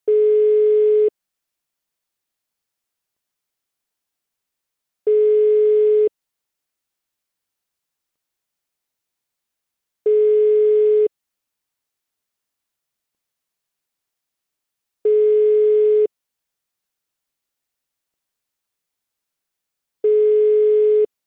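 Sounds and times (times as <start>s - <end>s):
German telephone dial tone: 0.1s - 1.1s, 5.1s - 6.1s, 10.1s - 11.1s, 15.1s - 16.1s, 20.0s - 21.1s.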